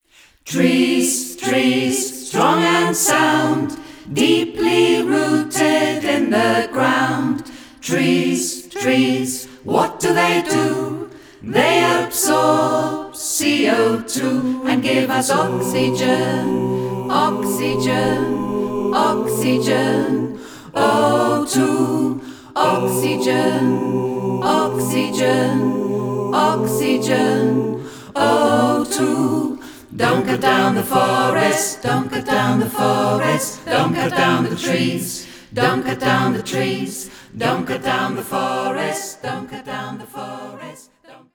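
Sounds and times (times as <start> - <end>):
SATB choir singing: 0.4 - 41.3.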